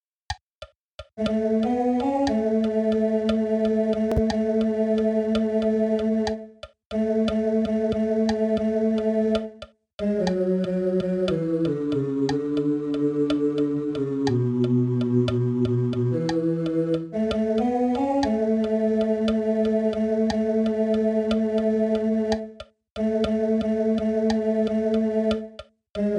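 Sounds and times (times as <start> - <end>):
bass: 1.2 - 26.1.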